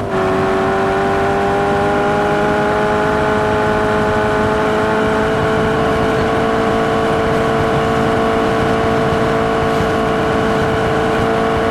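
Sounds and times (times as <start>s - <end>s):
vehicles cruising: 0.0s - 11.6s.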